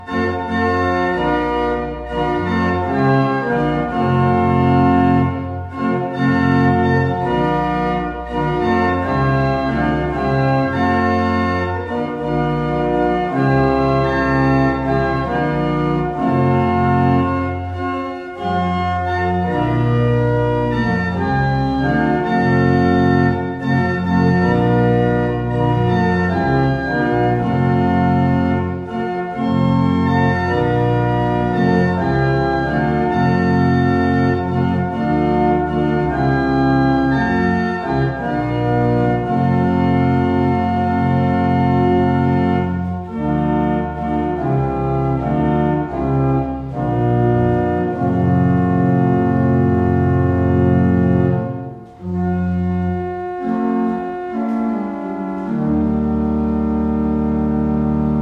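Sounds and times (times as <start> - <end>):
organ: 0.0 - 58.2.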